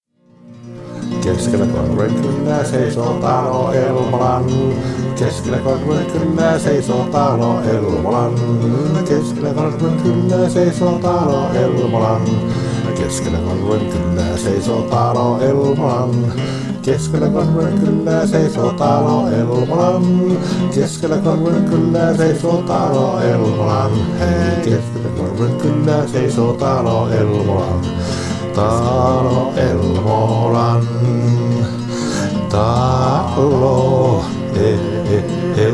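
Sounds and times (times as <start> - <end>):
acoustic music: 0.1 - 35.7.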